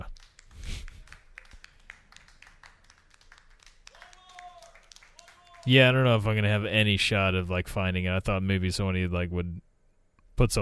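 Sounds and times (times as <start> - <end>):
small group applauding: 0.0 - 6.0
speech: 5.6 - 9.7, 10.4 - 10.6.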